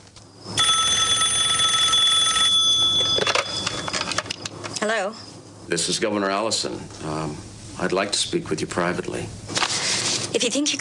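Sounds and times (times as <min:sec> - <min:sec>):
Karen's phone ringing: 0:00.5 - 0:04.5
speech: 0:05.7 - 0:09.6, 0:10.3 - 0:10.7.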